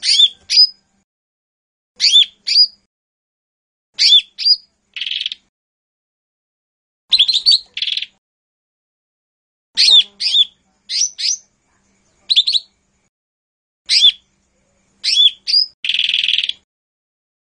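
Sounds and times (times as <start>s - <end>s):
Lesser green leafbird song with chirps and buzzy trills: 0.0s - 1.0s, 2.0s - 2.9s, 4.0s - 5.5s, 7.1s - 8.2s, 9.8s - 13.1s, 13.9s - 16.6s.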